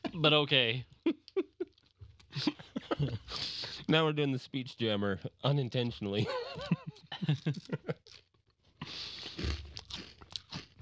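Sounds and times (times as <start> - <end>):
speech: 0.2 - 0.9, 2.4 - 8.2
laughter: 2.3 - 3.8, 6.1 - 8.0
loud crunching while eating: 8.0 - 10.8.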